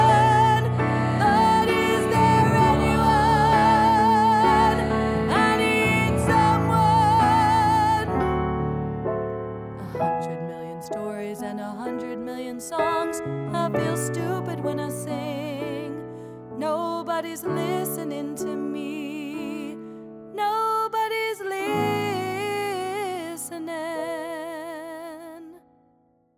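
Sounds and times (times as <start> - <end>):
female voices singing: 0.0 - 8.6, 9.8 - 16.0, 16.6 - 19.8, 20.4 - 25.6.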